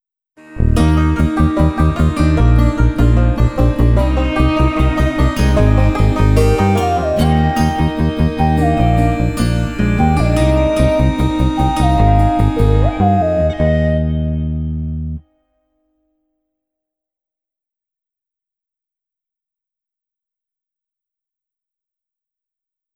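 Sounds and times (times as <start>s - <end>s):
theme music without percussion: 0.5s - 15.2s.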